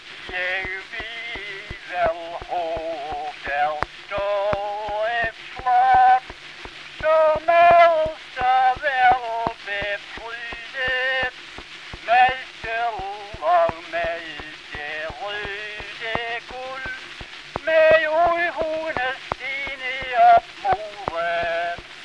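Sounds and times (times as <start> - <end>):
folk singing: 0.2 - 22.0.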